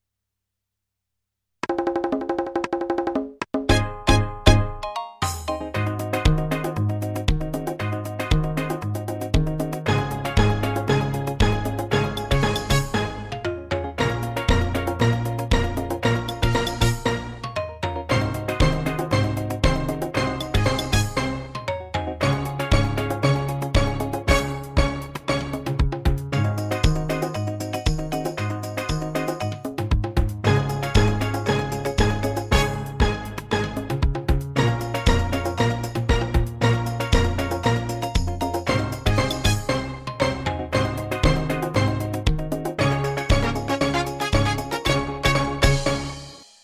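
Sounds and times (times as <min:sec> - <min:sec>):
calypso music in E flat: 0:01.7 - 0:46.6.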